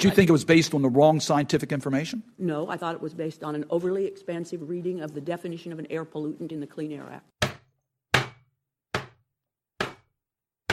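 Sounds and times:
speech: 0:00.0 - 0:07.4
head banging on a wooden table: 0:07.4 - 0:09.2, 0:09.8 - 0:10.1.

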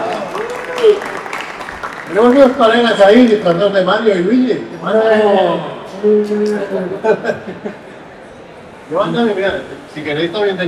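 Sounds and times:
audience applause: 0:00.0 - 0:03.7
speech: 0:00.8 - 0:01.2, 0:02.1 - 0:07.8, 0:08.9 - 0:10.6
laughter: 0:06.8 - 0:08.2.

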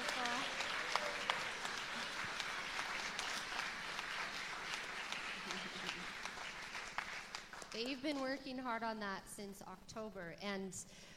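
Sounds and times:
audience applause: 0:00.0 - 0:07.8
laughter: 0:05.3 - 0:06.1
speech: 0:07.8 - 0:11.1.

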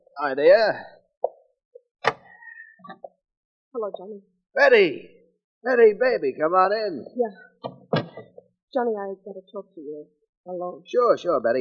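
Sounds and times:
speech: 0:00.2 - 0:00.9, 0:03.7 - 0:07.5, 0:08.7 - 0:11.5
door opening and creaking: 0:07.6 - 0:08.4.

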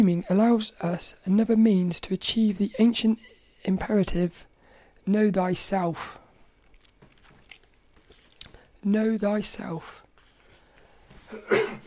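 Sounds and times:
speech: 0:00.0 - 0:06.2, 0:08.8 - 0:10.0, 0:11.3 - 0:11.8
person coughing: 0:11.3 - 0:11.8.

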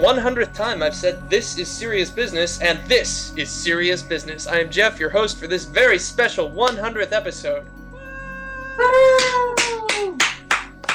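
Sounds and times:
speech: 0:00.0 - 0:07.8, 0:08.8 - 0:09.5
man punching his fist into his own palm: 0:09.2 - 0:10.9.

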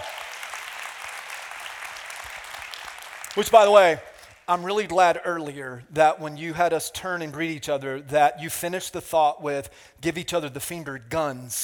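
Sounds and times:
church congregation clapping for departing campus pastor: 0:00.0 - 0:04.5
speech: 0:03.4 - 0:11.6.

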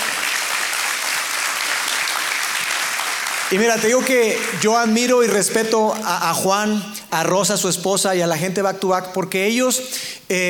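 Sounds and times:
audience applause: 0:00.0 - 0:05.9
speech: 0:03.5 - 0:10.4.

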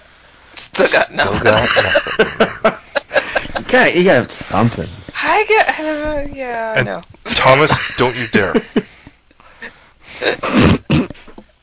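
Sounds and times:
speech: 0:00.8 - 0:02.8, 0:03.7 - 0:09.0, 0:10.2 - 0:10.8
laughter: 0:01.0 - 0:03.9, 0:07.4 - 0:09.0, 0:10.1 - 0:10.7
person snorting: 0:10.1 - 0:11.3.

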